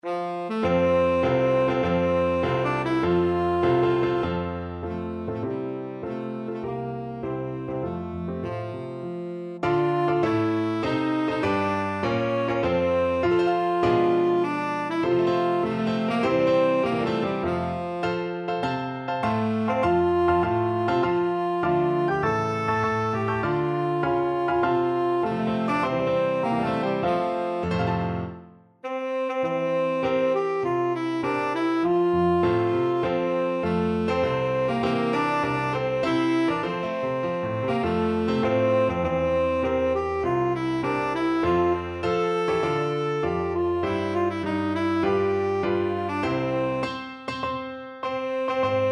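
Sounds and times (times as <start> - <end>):
tenor saxophone: 0.0 - 18.5, 19.2 - 47.2, 48.0 - 48.9.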